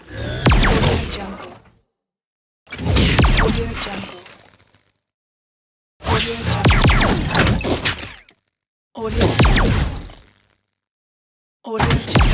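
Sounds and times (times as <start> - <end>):
plasma gun shot: 0.4 - 1.2, 3.0 - 3.9, 6.1 - 8.2, 9.2 - 10.2, 11.8 - 12.3.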